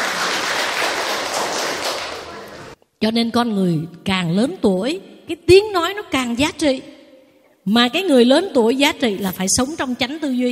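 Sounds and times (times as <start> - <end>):
applause: 0.0 - 2.8
speech: 3.0 - 6.9, 7.6 - 10.5.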